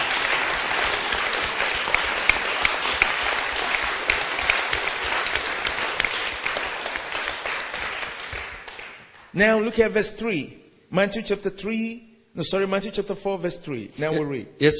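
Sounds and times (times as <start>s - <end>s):
church congregation clapping in praise: 0.0s - 9.8s
speech: 9.4s - 14.7s.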